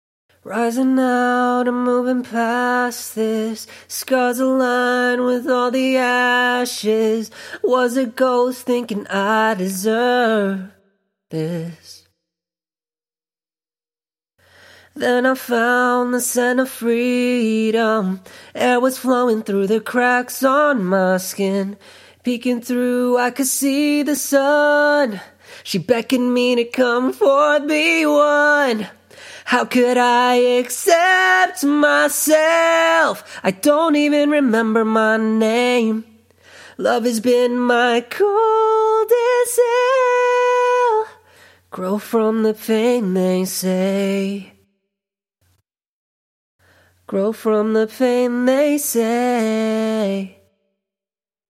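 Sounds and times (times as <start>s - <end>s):
acapella pop vocals in E minor at 132 bpm: 0.3s - 12.2s, 14.4s - 44.7s, 46.8s - 50.5s.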